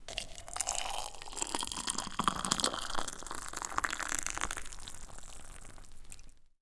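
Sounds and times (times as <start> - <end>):
boiling water pouring into cup: 0.0 - 6.4.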